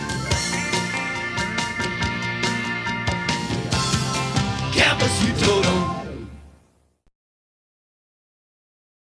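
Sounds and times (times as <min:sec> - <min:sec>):
advertising music: 0:00.0 - 0:06.7.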